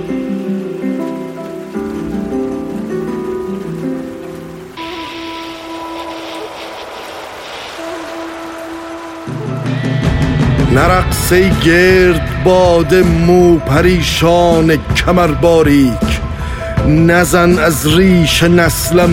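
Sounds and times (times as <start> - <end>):
sustained droning musical tones: 0.0 - 12.5
rain falling: 0.0 - 19.1
speech: 10.8 - 16.1, 16.9 - 19.1.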